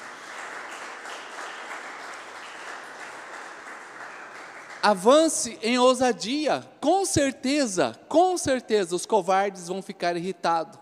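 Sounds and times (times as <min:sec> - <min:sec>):
audience applause: 0:00.0 - 0:05.0
speech: 0:04.8 - 0:10.8.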